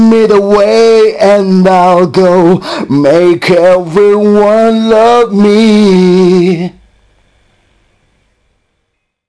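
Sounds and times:
person singing: 0.0 - 6.8.

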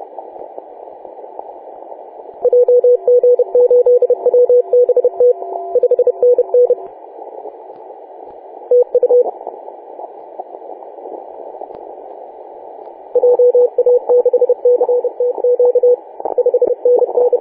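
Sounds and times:
CW morse code on 28.010 MHz: 2.5 - 6.8, 13.2 - 17.4.

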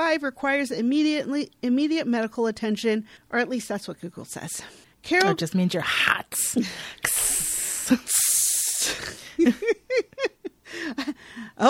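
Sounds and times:
speech: 0.2 - 7.2, 7.9 - 8.3, 8.9 - 10.1, 10.8 - 11.6
rhythmic voiced sounds rising and falling in pitch: 5.1 - 9.1
sizzling steam-like hiss sound effect: 6.3 - 9.0.

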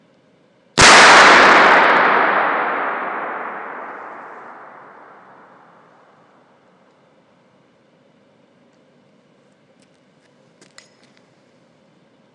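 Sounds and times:
boom: 0.8 - 5.9.

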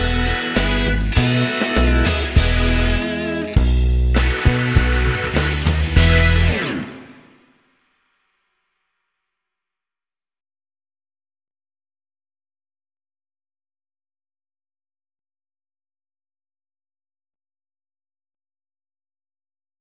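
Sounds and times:
classical boogie backing track: 0.0 - 7.3.

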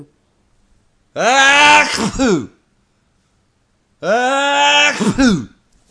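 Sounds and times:
person sneezing: 1.2 - 2.6, 4.1 - 5.6.

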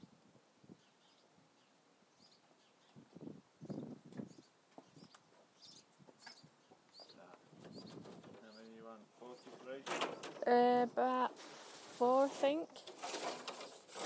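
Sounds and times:
bird chicks nesting in gutter eaves: 0.7 - 10.4
speech: 9.5 - 12.8.

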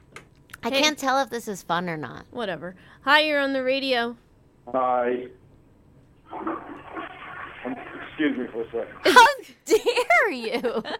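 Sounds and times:
speech: 0.6 - 5.4, 6.3 - 6.8, 7.6 - 10.9
toilet flushing: 6.2 - 9.4.

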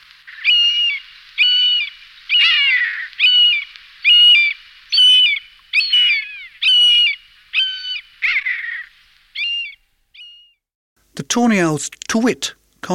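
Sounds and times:
buzzard mewing calls: 0.2 - 10.6
speech: 11.2 - 12.9.

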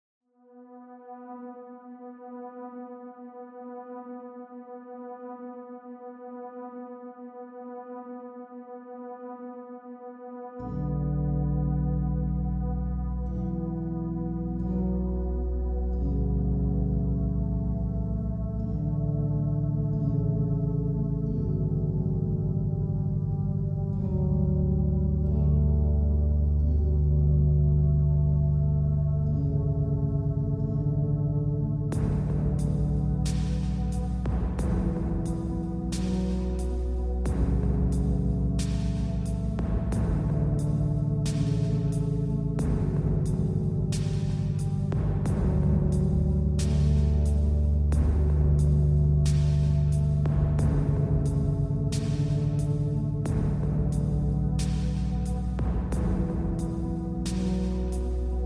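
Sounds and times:
ambient electronica: 0.4 - 58.4.

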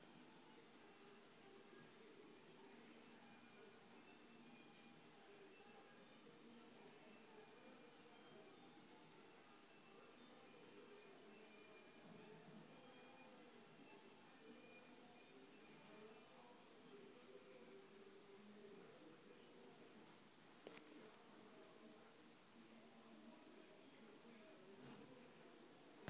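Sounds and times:
background noise: 0.0 - 26.0.

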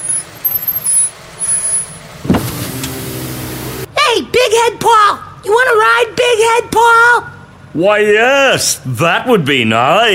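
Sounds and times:
heavy vehicle engine rumbling: 0.0 - 9.0
speech: 4.2 - 10.1.

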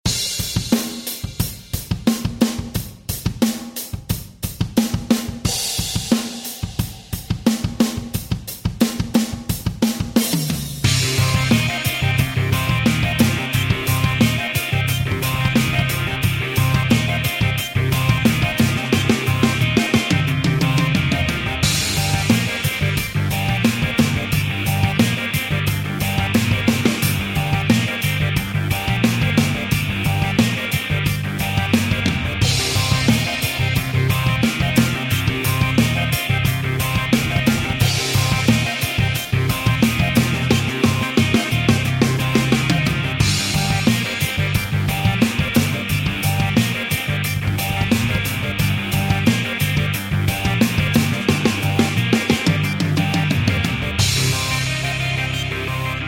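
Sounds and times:
rock instrumental: 0.0 - 56.0.

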